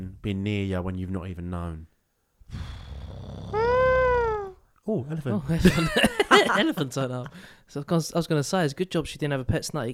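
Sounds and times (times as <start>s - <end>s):
speech: 0.2s - 1.9s, 4.8s - 9.9s
cat meowing: 3.6s - 4.6s
laughter: 5.6s - 7.0s.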